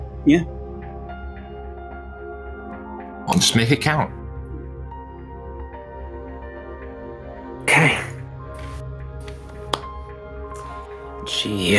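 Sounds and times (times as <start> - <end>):
speech: 0.2 - 0.6, 3.3 - 4.2, 11.4 - 11.7
hand clap: 7.7 - 10.9.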